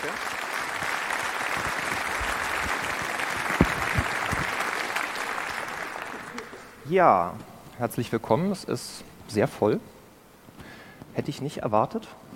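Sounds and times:
speech: 0.0s - 0.4s, 6.9s - 10.0s, 11.2s - 12.3s
audience applause: 0.0s - 6.8s.

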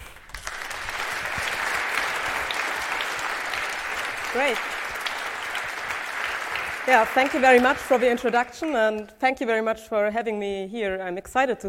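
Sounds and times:
audience applause: 0.0s - 9.1s
speech: 4.4s - 4.8s, 6.9s - 11.6s.

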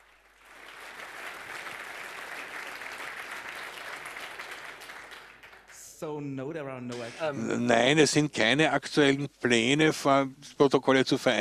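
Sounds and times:
applause: 0.0s - 6.1s
speech: 6.0s - 11.3s.

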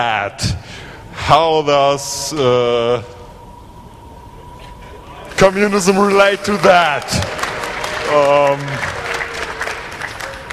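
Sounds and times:
speech: 0.0s - 0.7s, 1.3s - 3.2s, 5.4s - 7.4s, 8.1s - 9.0s
audience clapping at a gathering: 6.3s - 10.5s.

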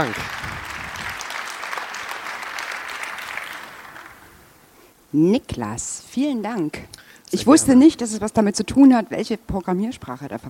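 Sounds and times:
speech: 0.0s - 0.5s, 5.1s - 10.4s
audience applause: 0.0s - 4.5s.

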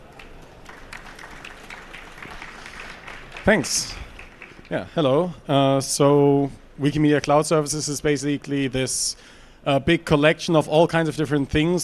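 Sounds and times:
audience applause: 0.0s - 4.9s
speech: 3.4s - 4.0s, 4.7s - 11.8s.

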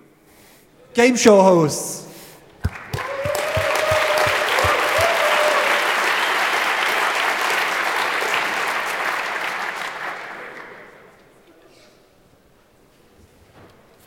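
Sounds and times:
speech: 1.0s - 2.0s
audience applause for game show hosts: 2.6s - 11.1s.

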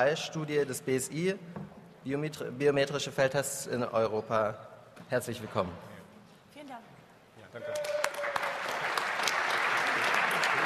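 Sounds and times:
speech: 0.0s - 5.9s
audience applause: 7.7s - 10.6s.

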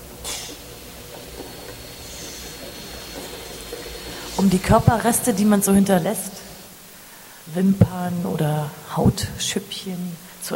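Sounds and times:
mini vacuum cleaner running: 0.0s - 7.0s
speech: 4.4s - 6.3s, 7.6s - 10.5s.

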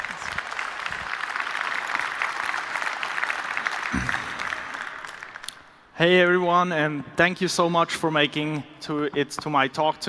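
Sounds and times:
audience applause: 0.0s - 5.5s
speech: 6.0s - 10.0s.

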